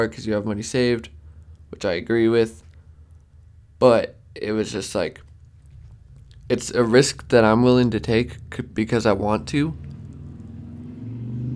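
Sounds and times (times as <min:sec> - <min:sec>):
speech: 0:00.0 - 0:02.6, 0:03.8 - 0:05.3, 0:06.5 - 0:09.9
motorcycle engine passing by outside: 0:09.6 - 0:11.5.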